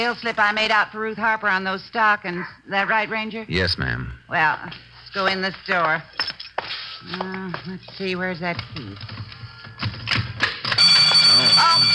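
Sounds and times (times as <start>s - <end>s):
speech: 0.0s - 6.3s, 7.0s - 10.0s
store burglar alarm ringing: 10.7s - 11.9s.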